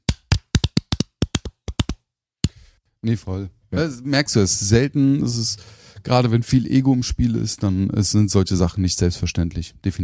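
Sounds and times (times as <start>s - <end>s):
hand clapping: 0.0s - 2.6s
speech: 3.0s - 10.0s.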